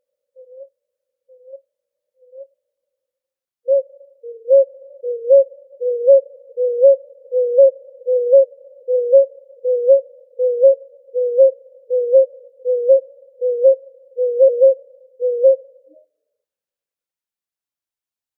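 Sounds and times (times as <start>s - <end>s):
ruddy ground dove cooing in Arizona: 3.7s - 16.0s.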